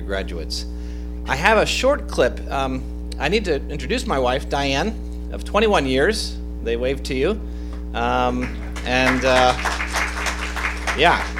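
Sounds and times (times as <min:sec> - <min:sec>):
low steady hum: 0:00.0 - 0:11.3
speech: 0:00.1 - 0:09.8, 0:11.0 - 0:11.3
crowd clapping: 0:08.4 - 0:11.3.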